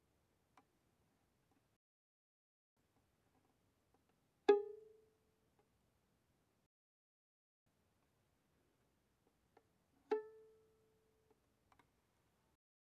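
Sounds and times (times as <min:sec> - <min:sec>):
very soft violin pizzicato on the G string: 0:04.5 - 0:05.0, 0:10.1 - 0:10.6.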